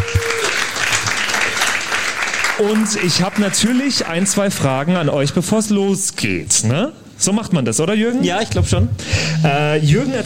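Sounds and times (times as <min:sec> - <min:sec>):
audience applause: 0:00.0 - 0:05.0
speech: 0:02.6 - 0:10.2.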